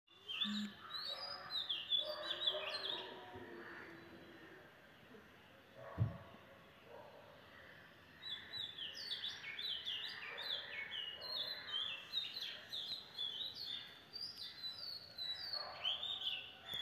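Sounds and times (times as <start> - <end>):
birds singing in a busy morning chorus: 0.1 - 16.8.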